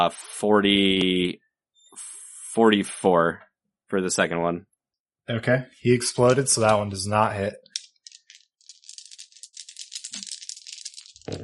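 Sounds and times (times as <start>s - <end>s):
speech: 0.0s - 1.4s, 2.0s - 4.7s, 5.3s - 7.7s
dice being rolled: 6.0s - 7.0s, 7.6s - 11.4s.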